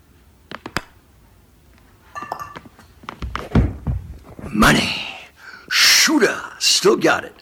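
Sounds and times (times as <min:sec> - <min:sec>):
golf ball rolling into a glass: 0:02.1 - 0:02.7
heavy thunks and rattles: 0:03.2 - 0:04.5
speech: 0:04.6 - 0:05.0, 0:06.9 - 0:07.3.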